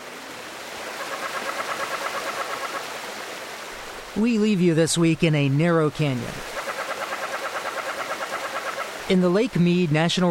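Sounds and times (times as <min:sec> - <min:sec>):
canyon tree frogs bleating: 0:00.9 - 0:03.0, 0:06.4 - 0:09.1
speech: 0:04.2 - 0:06.5, 0:09.1 - 0:10.2.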